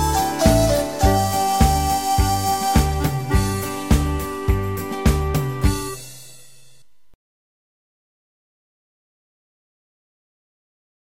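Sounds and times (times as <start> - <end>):
instrumental music: 0.0 - 7.2.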